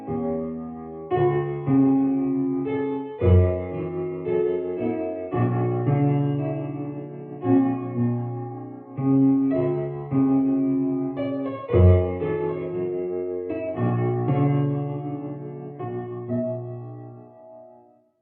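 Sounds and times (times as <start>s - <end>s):
dry piano: 0.0s - 18.0s.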